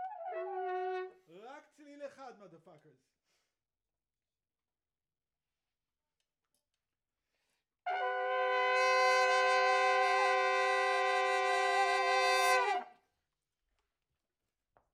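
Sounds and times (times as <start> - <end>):
trumpet: 0.0 - 1.3, 7.9 - 12.9.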